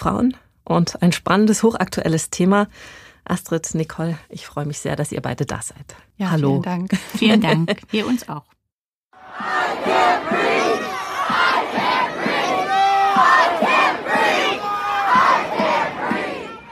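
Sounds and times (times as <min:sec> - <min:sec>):
speech: 0:00.0 - 0:08.6
laughter: 0:06.9 - 0:08.2
protest crowd shouting in unison: 0:09.2 - 0:16.7.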